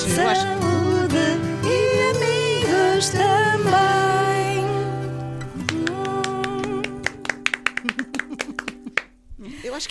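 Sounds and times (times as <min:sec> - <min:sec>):
speech: 0:00.0 - 0:02.3, 0:03.0 - 0:04.7
applause: 0:05.6 - 0:09.1.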